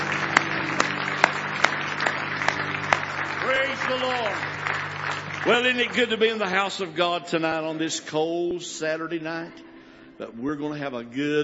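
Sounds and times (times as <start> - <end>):
audience applauding: 0.0 - 8.5
speech: 3.9 - 4.7, 5.4 - 11.4.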